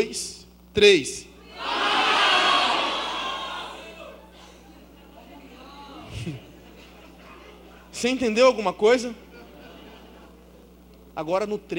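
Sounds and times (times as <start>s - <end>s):
speech: 0.0s - 1.8s, 6.3s - 6.5s, 8.0s - 9.2s, 11.2s - 11.7s
crowd shouting names of their churches: 1.4s - 4.3s
laughter: 1.6s - 8.0s, 9.1s - 10.9s.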